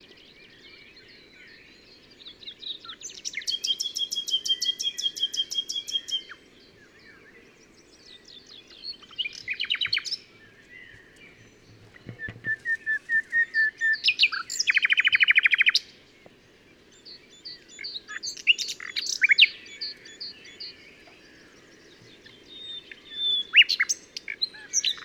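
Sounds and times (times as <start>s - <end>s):
common nightingale song: 0.0s - 25.0s
dull thump: 11.0s - 13.4s.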